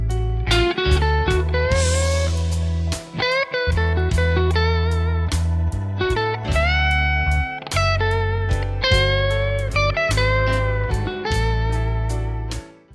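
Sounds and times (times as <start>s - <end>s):
guitar lick: 0.1s - 12.7s.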